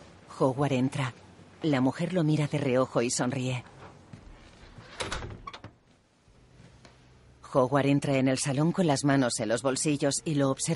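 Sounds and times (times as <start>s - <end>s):
speech: 0.4s - 3.7s, 7.5s - 10.7s
door opening: 3.8s - 5.8s.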